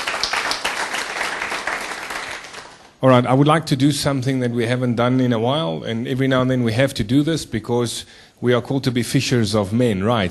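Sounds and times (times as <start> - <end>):
church congregation applauding: 0.0 - 3.0
speech: 3.0 - 10.2.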